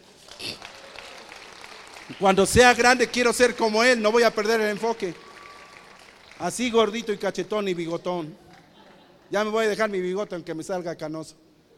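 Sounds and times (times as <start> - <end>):
audience applause: 0.0 - 7.4
speech: 2.1 - 5.3, 6.4 - 8.4, 9.3 - 11.4.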